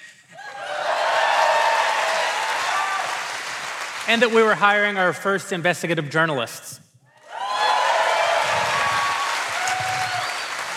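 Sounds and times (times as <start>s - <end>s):
whistles and cheers: 0.4s - 3.3s, 7.2s - 10.7s
audience applause: 0.4s - 4.6s, 7.3s - 10.7s
speech: 4.1s - 6.8s.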